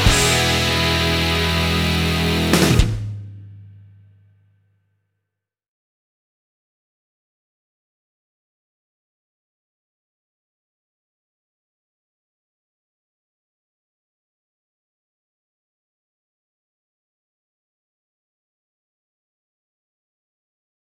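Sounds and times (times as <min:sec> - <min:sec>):
rock guitar backing track: 0:00.0 - 0:03.4.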